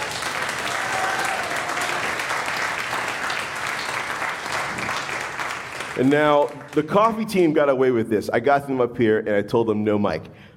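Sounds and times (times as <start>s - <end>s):
crowd applause: 0.0s - 7.2s
speech: 6.0s - 10.4s.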